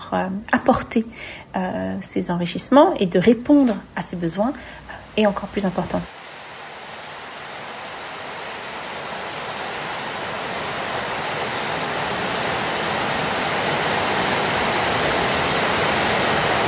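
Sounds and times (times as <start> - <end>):
speech: 0.1 - 6.2
heavy downpour of rain: 5.0 - 16.6.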